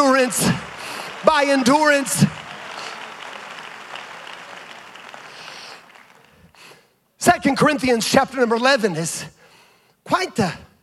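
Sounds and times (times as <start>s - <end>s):
speech: 0.0s - 2.4s, 7.2s - 9.4s, 10.1s - 10.7s
audience clapping hands: 0.0s - 6.8s.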